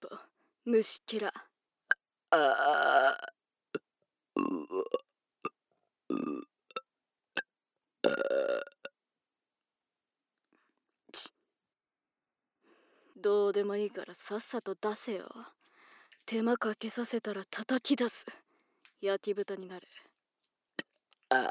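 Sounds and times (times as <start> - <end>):
speech: 0.7 - 1.5, 2.3 - 3.4, 13.2 - 15.6, 16.3 - 18.4, 19.0 - 20.0, 21.3 - 21.5
person burping: 2.3 - 3.4, 4.4 - 5.0, 6.1 - 6.8, 8.0 - 8.9, 21.3 - 21.5.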